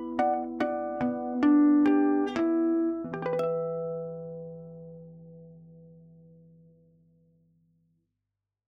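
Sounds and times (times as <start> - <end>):
music box: 0.0 - 5.1
guitar: 0.0 - 5.5.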